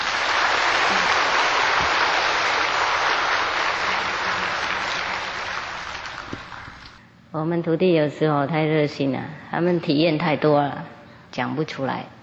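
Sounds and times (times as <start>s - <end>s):
warm audience applause: 0.0s - 7.0s
speech: 7.4s - 12.2s.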